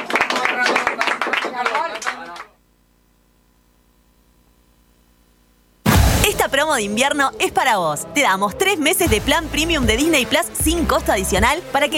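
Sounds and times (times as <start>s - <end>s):
applause: 0.0s - 2.6s
speech: 6.6s - 11.9s.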